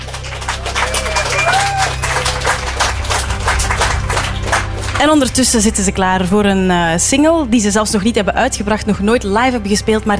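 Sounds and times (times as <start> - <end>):
audience applause in Leuven: 0.0 - 5.2
speech: 5.0 - 10.1.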